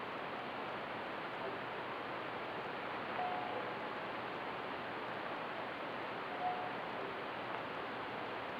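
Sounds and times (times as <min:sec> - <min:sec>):
VHF radio transmission: 0:00.2 - 0:08.5.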